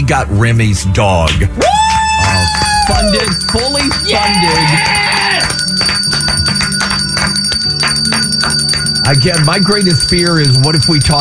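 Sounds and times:
speech: 0:00.1 - 0:06.5, 0:09.1 - 0:11.2
bell ringing: 0:02.6 - 0:11.2.

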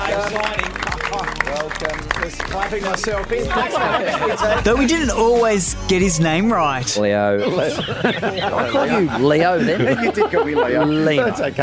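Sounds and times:
round of applause: 0:00.0 - 0:03.8
laughter: 0:00.0 - 0:05.6, 0:07.4 - 0:11.6
speech: 0:01.9 - 0:11.6.

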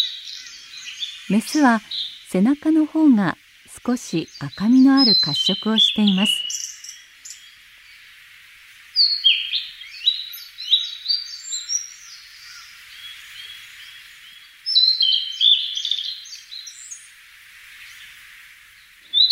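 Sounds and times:
blue-and-white flycatcher singing: 0:00.0 - 0:07.6, 0:09.0 - 0:14.0, 0:14.7 - 0:17.0, 0:19.1 - 0:19.3
steady faint hiss: 0:00.0 - 0:19.3
speech: 0:01.3 - 0:06.6.

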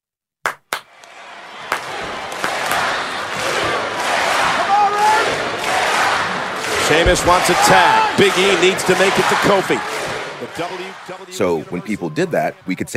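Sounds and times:
sharp loud claps: 0:00.4 - 0:00.9, 0:01.7 - 0:08.4
large crowd chanting a wrestling cadence and cheering: 0:00.8 - 0:12.9
speech: 0:06.9 - 0:12.9.

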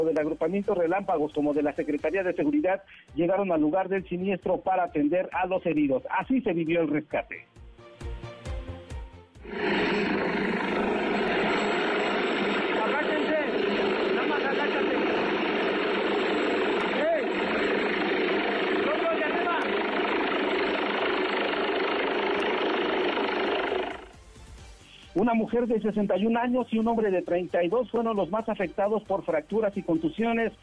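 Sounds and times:
speech: 0:00.0 - 0:07.6, 0:09.4 - 0:10.4, 0:25.2 - 0:30.6
rescue helicopter rotor and engine roar: 0:09.4 - 0:24.2.

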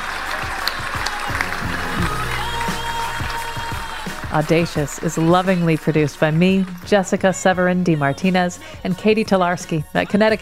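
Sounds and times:
audience applause: 0:00.0 - 0:07.1
speech: 0:04.3 - 0:10.3.

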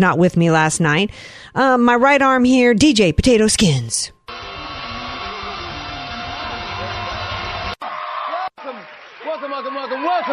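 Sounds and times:
speech: 0:00.0 - 0:04.2
crowd cheering and whooping: 0:04.4 - 0:10.3.

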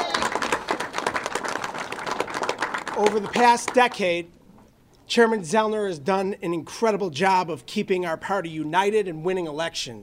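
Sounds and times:
round of applause: 0:00.0 - 0:04.0
speech: 0:03.0 - 0:04.4, 0:05.1 - 0:10.0.

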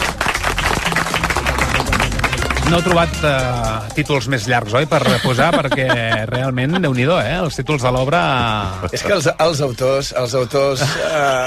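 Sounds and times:
studio audience applause greeting guests: 0:00.0 - 0:03.9
speech: 0:02.7 - 0:11.4
laughter: 0:04.9 - 0:07.3, 0:10.6 - 0:11.4.

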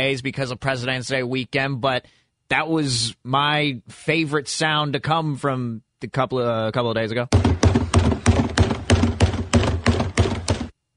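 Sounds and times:
speech: 0:00.0 - 0:07.8
trash can banging: 0:07.4 - 0:10.7.

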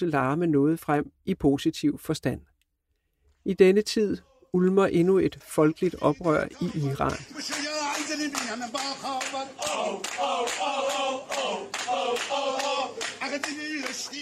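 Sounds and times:
speech: 0:00.0 - 0:02.5, 0:03.4 - 0:14.2
men and women singing: 0:05.4 - 0:14.2.

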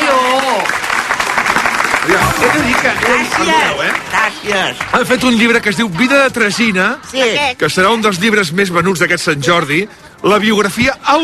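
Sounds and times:
audience applause: 0:00.0 - 0:06.1
speech: 0:02.1 - 0:11.2.

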